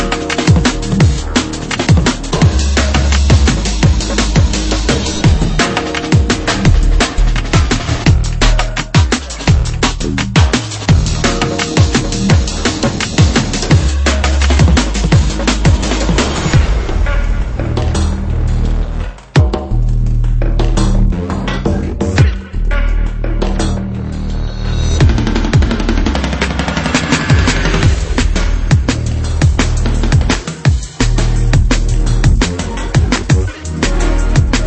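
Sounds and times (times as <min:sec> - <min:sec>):
foley drum and bass music: 0:00.0 - 0:34.6.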